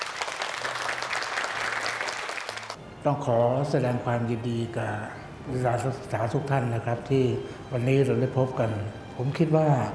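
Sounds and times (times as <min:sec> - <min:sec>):
audience applause welcoming a guest: 0:00.0 - 0:02.8
speech: 0:03.0 - 0:09.9.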